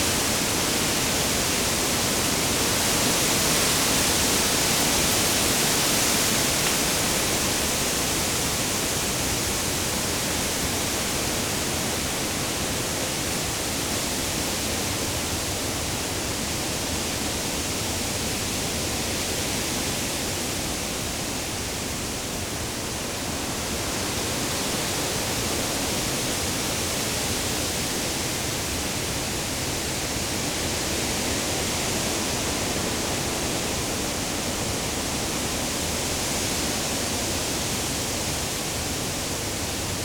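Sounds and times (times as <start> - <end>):
wind in a mixed forest on a windy day: 0.0 - 40.0.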